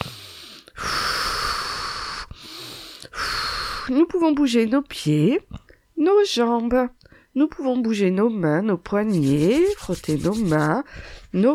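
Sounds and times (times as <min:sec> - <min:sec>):
deep breathing during a relaxation exercise: 0:00.0 - 0:03.9, 0:10.9 - 0:11.3
speech: 0:03.9 - 0:11.5.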